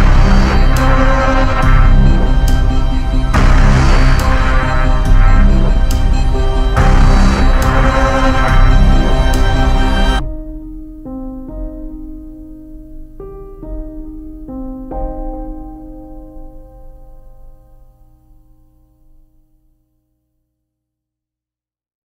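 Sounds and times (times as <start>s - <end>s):
dark epic industrial hybrid horror trailer music: 0.0s - 11.5s.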